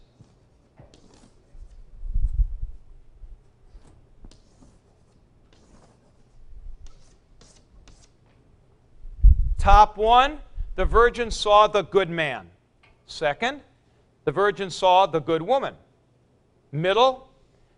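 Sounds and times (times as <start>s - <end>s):
scratchy strokes of arrows drawn by hand: 0.2s - 1.9s, 3.6s - 8.2s
speech: 9.6s - 13.7s, 14.3s - 15.8s, 16.7s - 17.3s.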